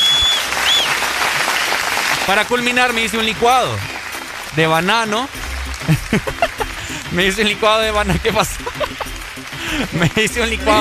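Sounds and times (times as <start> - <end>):
high whistles: 0.0 - 1.1
crowd applause sound effect: 0.0 - 10.7
speech: 2.3 - 3.9, 4.5 - 6.4, 7.1 - 8.8, 9.8 - 10.7
laughter: 5.8 - 10.7.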